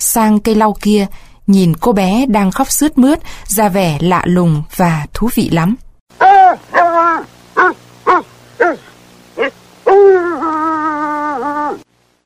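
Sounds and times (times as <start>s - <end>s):
speech: 0.0s - 5.8s
distant dogs barking and yelping: 6.2s - 11.9s.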